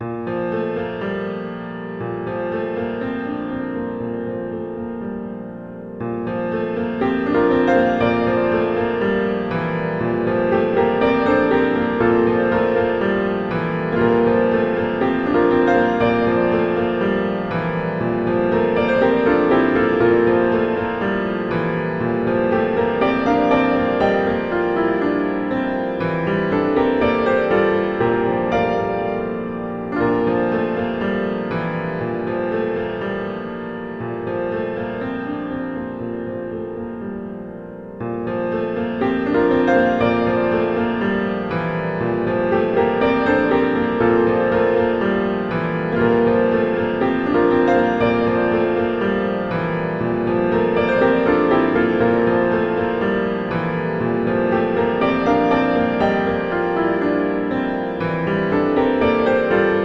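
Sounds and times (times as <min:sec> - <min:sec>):
piano arrangement: 0:00.0 - 0:59.8.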